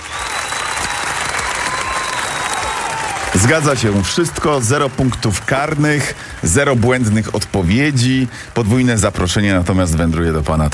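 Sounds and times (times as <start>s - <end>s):
audience clapping: 0.0s - 10.7s
speech: 3.4s - 10.7s.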